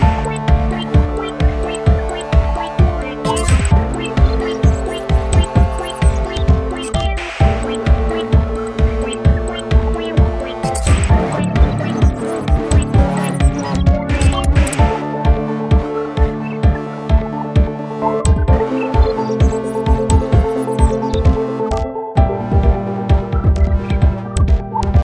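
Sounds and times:
chords: 0.0s - 25.0s.

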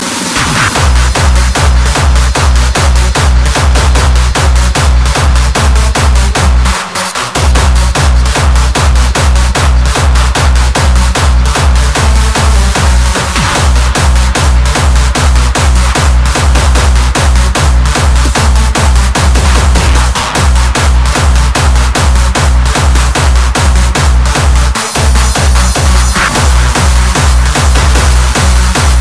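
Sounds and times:
acid synth music: 0.0s - 29.0s.

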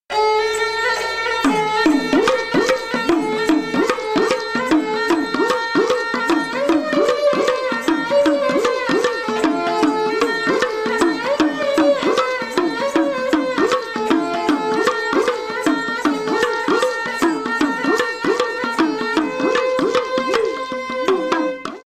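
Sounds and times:
Punjabi sarangi: 0.0s - 21.8s.

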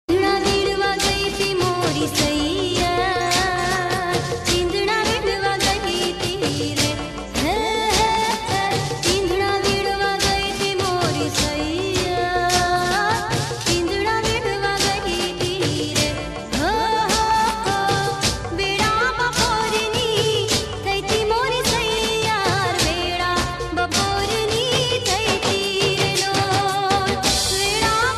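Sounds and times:
Garba folk dance music: 0.1s - 28.1s.

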